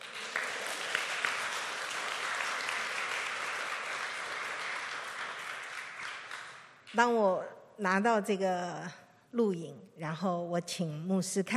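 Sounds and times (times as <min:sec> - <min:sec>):
applause: 0:00.0 - 0:07.1
speech: 0:06.9 - 0:11.5.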